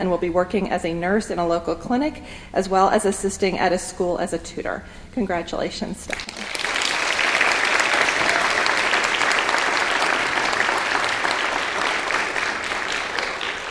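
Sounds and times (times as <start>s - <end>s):
speech: 0.0s - 6.6s
audience applause: 6.1s - 13.6s.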